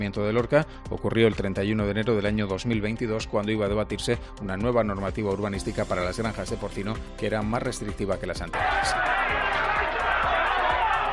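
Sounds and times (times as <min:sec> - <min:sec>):
speech: 0:00.0 - 0:09.4
crowd uproar of livestock farmers storming the Lorca town council plenary: 0:08.5 - 0:11.1.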